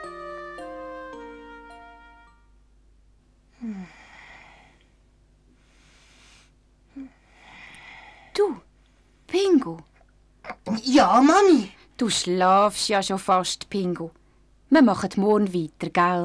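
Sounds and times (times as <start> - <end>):
speech: 9.6 - 9.9, 10.8 - 16.2
person yawning: 10.6 - 11.8.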